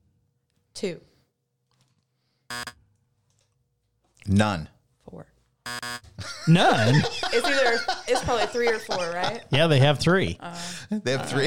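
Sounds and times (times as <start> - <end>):
speech: 0.8 - 1.1, 4.2 - 5.8, 6.5 - 11.4
quiz buzzer: 2.5 - 2.8, 5.6 - 6.1
laughter: 6.2 - 10.0, 10.8 - 11.4.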